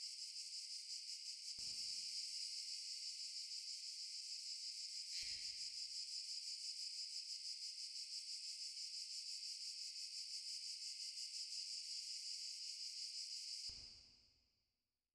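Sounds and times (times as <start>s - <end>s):
cicada: 0.0s - 14.4s.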